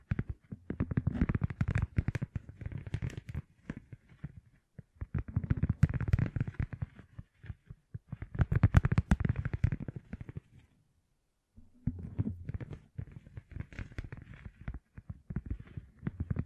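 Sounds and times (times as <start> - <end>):
gem-covered fingertips tapping and scratching: 0.0 - 10.7, 11.8 - 16.4.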